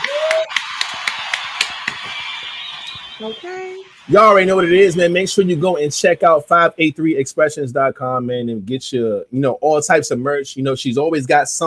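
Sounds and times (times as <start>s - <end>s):
round of applause: 0.0s - 3.3s
speech: 3.2s - 11.6s.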